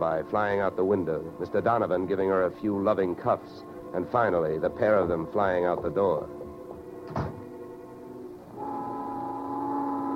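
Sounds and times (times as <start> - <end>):
speech: 0.0 - 6.4
noon whistle blowing in New York: 8.5 - 10.1.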